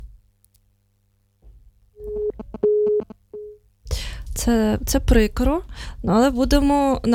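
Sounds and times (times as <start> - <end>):
telephone ringing tone beeps with no answer: 2.0 - 3.6
speech: 4.4 - 7.1.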